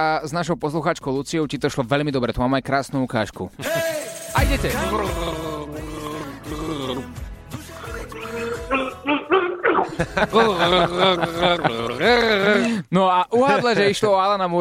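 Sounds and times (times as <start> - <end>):
speech: 0.0 - 5.6, 10.0 - 14.5
laughter: 3.6 - 4.1, 8.2 - 12.8, 13.4 - 14.2
person gargling a tune: 4.6 - 12.8.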